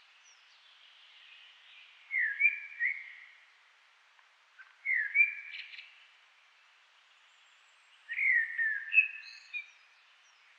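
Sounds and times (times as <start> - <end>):
common blackbird Turdus merula singing: 2.1 - 3.3, 4.8 - 5.8, 8.1 - 10.5.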